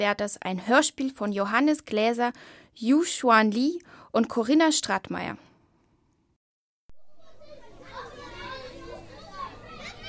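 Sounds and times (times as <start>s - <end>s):
speech: 0.0s - 5.5s
crowd of excited schoolchildren in the Museum of Modern Arts in New York: 7.0s - 10.0s.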